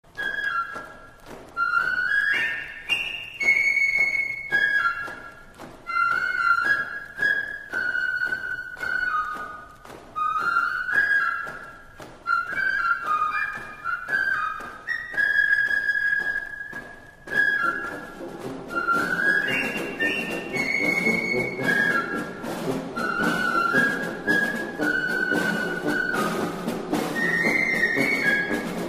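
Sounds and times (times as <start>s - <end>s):
march music: 0.0s - 28.8s.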